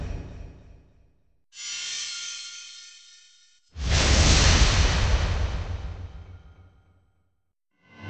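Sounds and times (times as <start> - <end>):
magic spell casting: 1.6 - 6.4.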